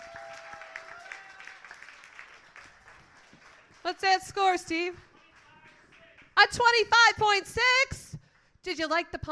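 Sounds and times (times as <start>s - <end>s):
audience applause: 0.0s - 4.0s
speech: 3.8s - 5.1s, 6.4s - 8.0s, 8.6s - 9.2s.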